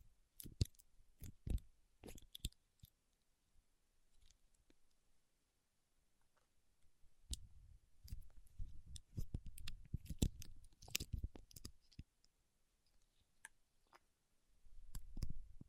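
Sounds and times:
paraffin wax tapped peeled and scratched: 0.4 - 3.0, 8.9 - 12.1.

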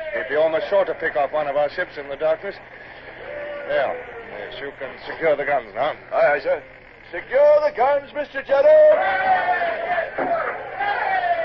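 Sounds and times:
ship's crew of men cheering and shouting: 0.0 - 0.8, 3.1 - 4.6, 8.5 - 11.4
speech: 0.2 - 3.0, 3.7 - 10.4.

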